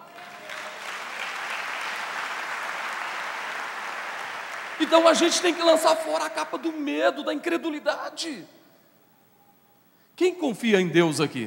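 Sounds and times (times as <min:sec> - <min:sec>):
audience applause: 0:00.0 - 0:06.6
speech: 0:04.8 - 0:08.6, 0:10.2 - 0:11.4.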